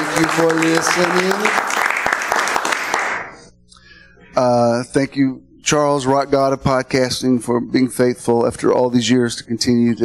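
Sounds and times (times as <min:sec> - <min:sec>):
live church audience applauding a welcome: 0:00.0 - 0:03.4
speech: 0:00.2 - 0:01.8, 0:04.4 - 0:10.0.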